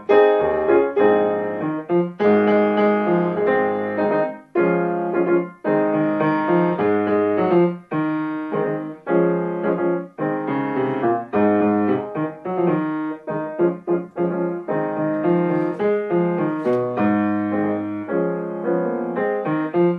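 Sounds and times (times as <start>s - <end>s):
piano accompaniment: 0.0s - 19.9s.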